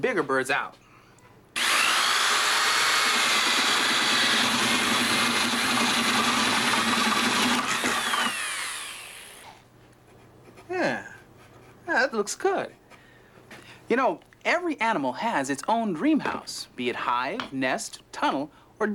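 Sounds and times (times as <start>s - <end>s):
speech: 0.0s - 0.8s, 12.1s - 12.8s, 13.9s - 18.9s
power tool cutting a round hole: 1.6s - 9.6s.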